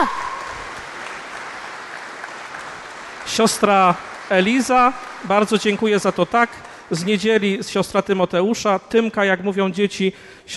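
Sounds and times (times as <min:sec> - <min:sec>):
crowd clapping: 0:00.0 - 0:08.4
speech: 0:03.3 - 0:10.5.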